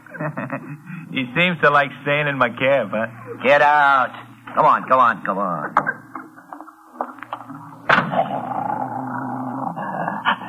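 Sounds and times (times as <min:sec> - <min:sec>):
speech: 0:00.2 - 0:05.9
dogs growling at each other: 0:07.4 - 0:10.4.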